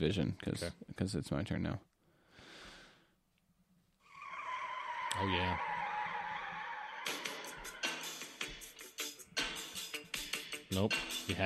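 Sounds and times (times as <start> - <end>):
speech: 0.0 - 1.9, 5.2 - 5.7, 10.7 - 11.4
tire squealing opening a wrestling entrance theme: 4.1 - 8.0.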